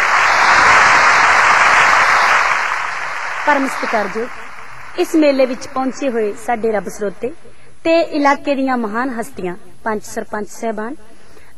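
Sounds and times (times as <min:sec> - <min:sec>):
fair audience applauding a female singer onto the stage: 0:00.0 - 0:06.2
speech: 0:03.5 - 0:04.4, 0:05.0 - 0:11.5.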